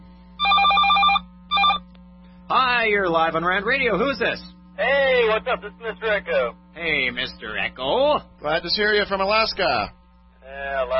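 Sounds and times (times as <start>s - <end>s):
steady low hum: 0.0s - 10.9s
telephone ringing with an incoming call: 0.4s - 1.8s
speech: 2.5s - 10.0s, 10.8s - 10.9s.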